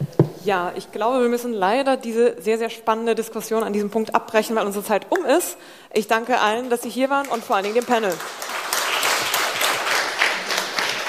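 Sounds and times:
speech: 0:00.4 - 0:08.6
audience applause: 0:07.3 - 0:11.0.

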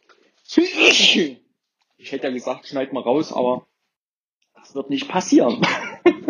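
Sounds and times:
speech: 0:00.5 - 0:01.4, 0:02.0 - 0:03.7, 0:04.7 - 0:05.9
person sneezing from hay fever or a slight cold: 0:00.6 - 0:01.4.

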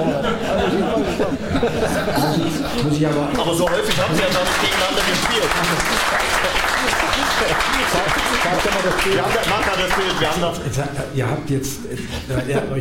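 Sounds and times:
laughter: 0:00.0 - 0:12.7
speech: 0:01.2 - 0:12.7
audience clapping: 0:02.8 - 0:10.6.

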